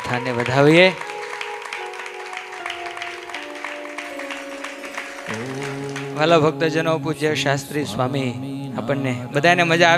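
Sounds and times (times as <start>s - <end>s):
applause at a Swaminarayan religious discourse at Vadtal: 0.0s - 6.5s
sustained musical tones: 0.0s - 9.4s
speech: 0.1s - 1.1s, 5.3s - 9.9s.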